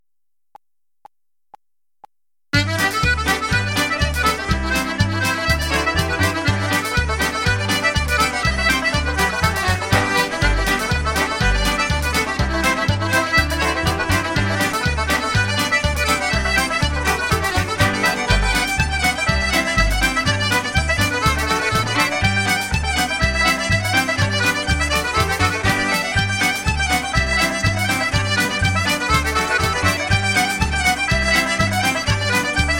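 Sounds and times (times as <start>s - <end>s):
traditional Irish reel in G: 2.6s - 32.7s.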